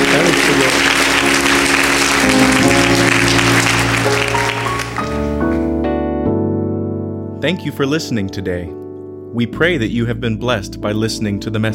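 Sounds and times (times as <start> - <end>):
church congregation applauding during a worship service: 0.0 - 5.4
sustained keyboard chords: 0.0 - 11.7
speech: 7.4 - 11.7.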